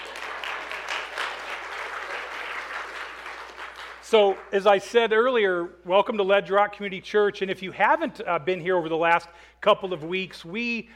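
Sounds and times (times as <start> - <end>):
church congregation applauding at an Easter service: 0.0 - 4.8
speech: 4.1 - 10.9.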